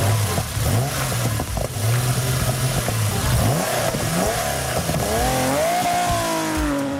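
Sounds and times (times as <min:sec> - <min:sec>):
Porsche 911 engine revving: 0:00.0 - 0:06.9.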